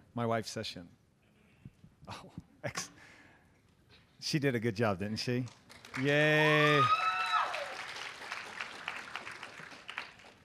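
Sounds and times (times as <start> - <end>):
speech: 0.2 - 1.0, 2.1 - 2.9, 4.2 - 7.0
audience applause: 5.7 - 10.4
high-pitched whoop: 6.4 - 7.8.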